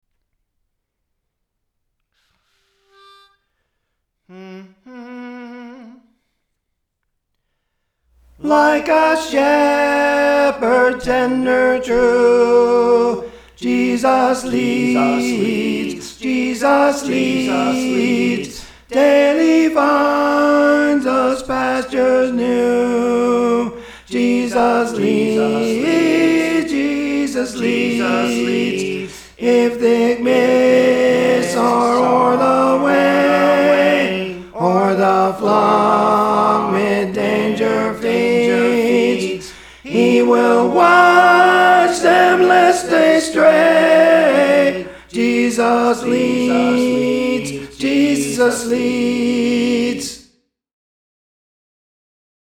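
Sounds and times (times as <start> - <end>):
tenor singing: 8.3 - 50.2.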